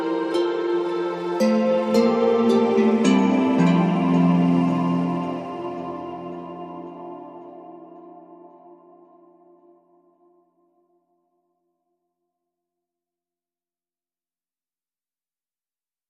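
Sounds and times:
twinkly Christmas carol: 0:00.0 - 0:11.0.

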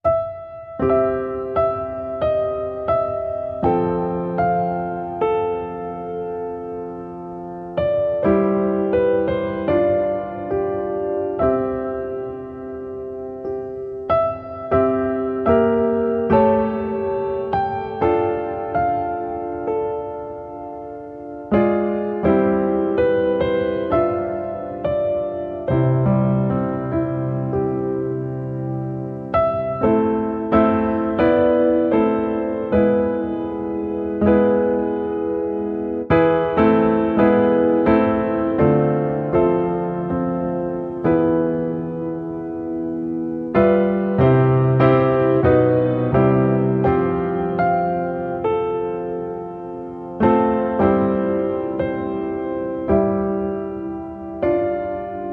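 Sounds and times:
piano piece: 0:00.0 - 0:55.3.

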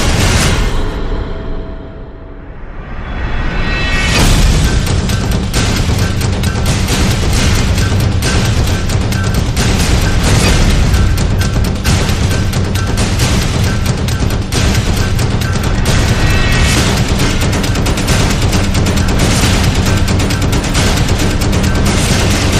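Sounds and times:
drums: 0:00.0 - 0:01.8, 0:02.5 - 0:22.5.

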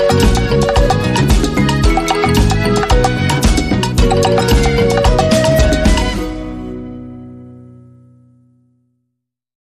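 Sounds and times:
Cuban rumba music: 0:00.0 - 0:07.6.

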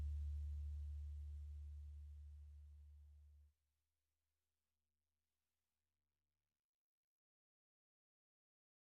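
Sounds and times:
percussion: 0:00.0 - 0:02.4
bass: 0:00.0 - 0:03.5.

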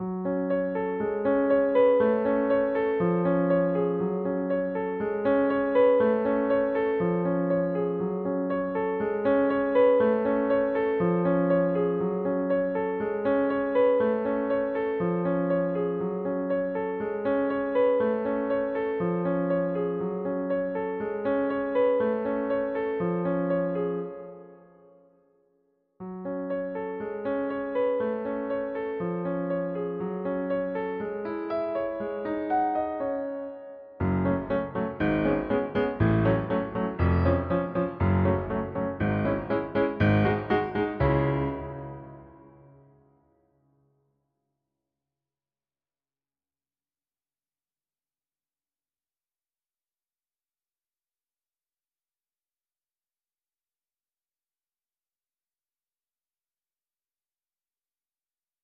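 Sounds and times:
piano piece: 0:00.0 - 0:43.4.

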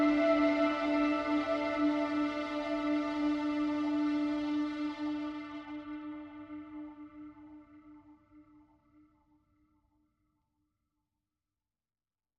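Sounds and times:
ambient music mix: 0:00.0 - 0:08.1.

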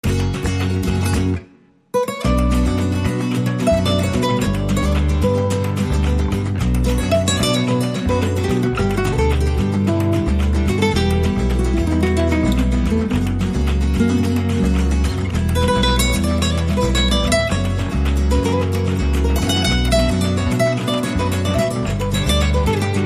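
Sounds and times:
passionate flamenco music: 0:00.0 - 0:23.0.

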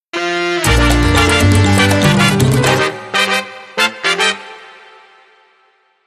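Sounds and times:
big band mambo sting: 0:00.2 - 0:04.4.

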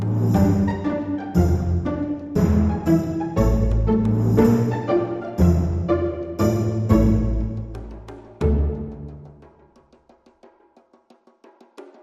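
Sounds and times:
strings: 0:00.0 - 0:09.5
percussion: 0:00.0 - 0:12.0.

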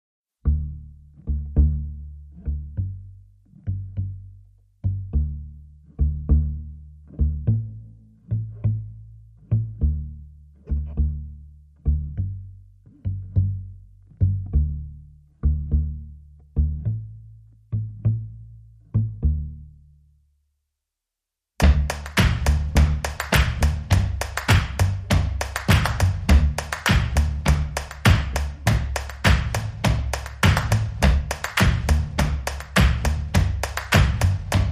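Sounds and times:
bass: 0:00.3 - 0:20.6, 0:21.6 - 0:34.7
drums: 0:21.6 - 0:34.7.

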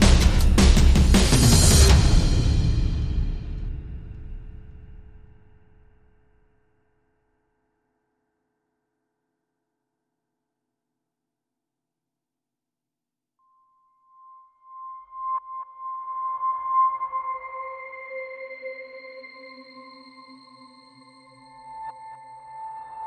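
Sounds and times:
drums: 0:00.0 - 0:06.0.

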